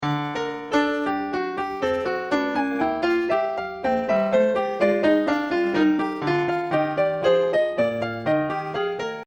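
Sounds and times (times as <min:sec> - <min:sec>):
piano: 0:00.0 - 0:09.2.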